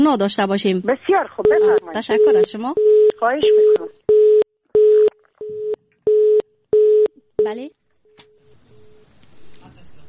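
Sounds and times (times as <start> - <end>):
speech: 0.0 - 4.0, 7.5 - 7.8
telephone line beeps after a call drops: 1.5 - 7.6.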